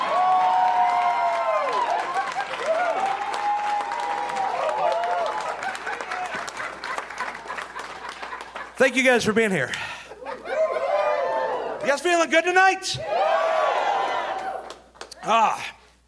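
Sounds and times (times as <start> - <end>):
crowd audience applause: 0.0 - 9.3, 13.2 - 15.1
laughter: 1.9 - 2.7, 5.3 - 9.2, 9.9 - 11.6
speech: 8.8 - 9.9, 11.9 - 13.4, 15.2 - 15.8.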